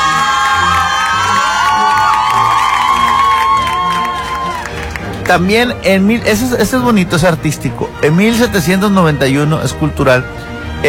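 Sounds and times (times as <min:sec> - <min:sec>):
cheering: 0:00.0 - 0:05.2
applause: 0:00.0 - 0:05.7
speech: 0:05.3 - 0:10.8.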